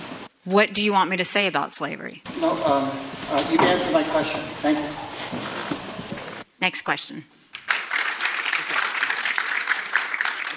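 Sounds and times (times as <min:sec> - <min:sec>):
speech: 0:00.4 - 0:05.5, 0:06.6 - 0:07.4
audience clapping: 0:07.5 - 0:10.5.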